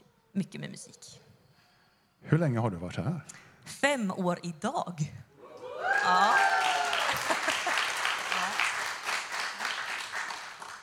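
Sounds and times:
speech: 0.4 - 1.3, 2.2 - 5.2, 6.1 - 6.5
audience applauding: 5.9 - 10.8.

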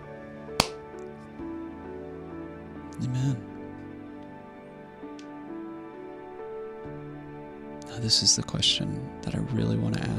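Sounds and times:
hand clap: 0.6 - 0.8
speech: 3.0 - 3.5, 8.0 - 10.1.

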